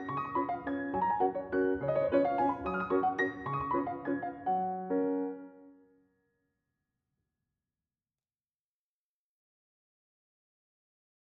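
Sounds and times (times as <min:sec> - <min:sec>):
waltz in G-flat major: 0:00.0 - 0:05.5.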